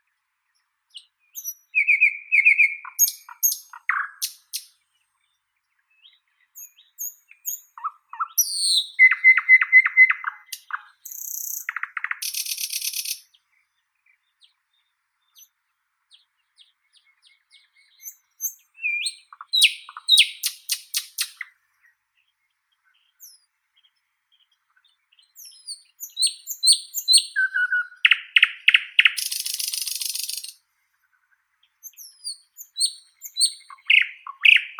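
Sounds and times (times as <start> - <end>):
common nightingale Luscinia luscinia singing: 0.0 - 30.6, 31.6 - 34.7.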